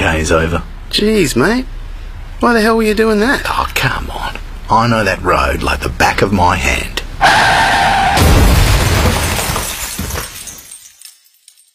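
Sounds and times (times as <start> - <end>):
speech: 0.0 - 1.8, 2.4 - 7.6
glass shattering: 8.2 - 11.7
glass fragments tinkling and skittering: 8.6 - 11.7.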